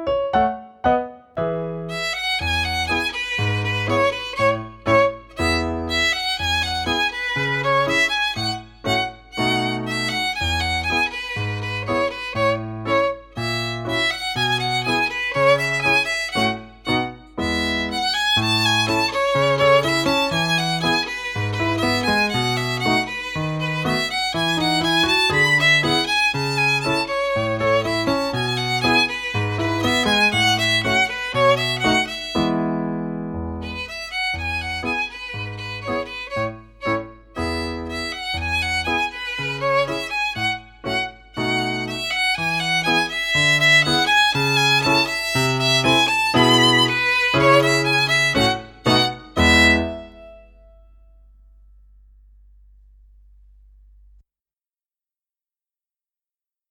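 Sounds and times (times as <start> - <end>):
ragtime violin: 0.1 - 50.6.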